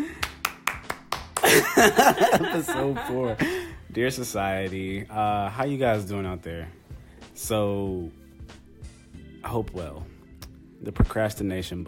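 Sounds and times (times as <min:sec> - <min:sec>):
hands clapping: 0:00.0 - 0:02.4
laughter: 0:01.4 - 0:03.7
speech: 0:01.8 - 0:06.8, 0:07.4 - 0:08.2, 0:09.4 - 0:10.1, 0:10.8 - 0:11.8.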